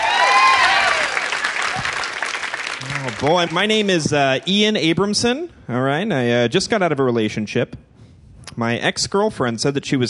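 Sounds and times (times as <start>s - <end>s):
high whoops: 0.0s - 2.1s
comedy club audience clapping: 0.0s - 4.5s
speech: 3.1s - 7.9s, 8.5s - 10.0s.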